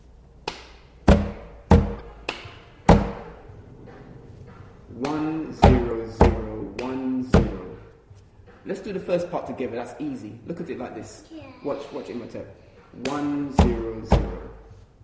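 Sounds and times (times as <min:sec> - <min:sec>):
hand claps in a binary rhythm: 0:00.4 - 0:01.0, 0:01.9 - 0:03.2, 0:05.0 - 0:05.9, 0:06.7 - 0:07.1, 0:13.0 - 0:13.6
speech: 0:08.7 - 0:14.4.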